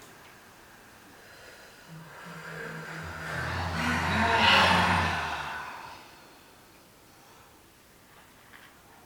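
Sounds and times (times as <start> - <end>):
slow deep inhalation during a guided breathing exercise: 0.5 - 6.6
low sustained tones: 1.8 - 6.5.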